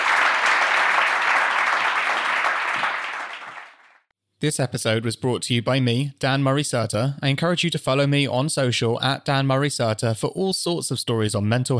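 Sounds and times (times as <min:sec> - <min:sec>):
audience applause: 0:00.0 - 0:04.0
speech: 0:04.4 - 0:11.7.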